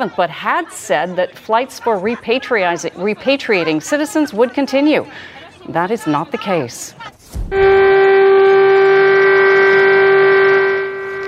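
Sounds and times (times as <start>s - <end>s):
speech: 0.0s - 8.2s
cars, trains and ships sounding horns across China: 7.5s - 11.2s.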